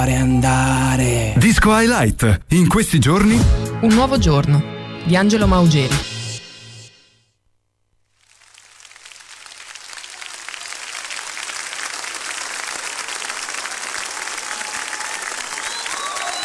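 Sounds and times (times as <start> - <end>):
speech: 0.0 - 6.1
audience applause: 8.2 - 16.4.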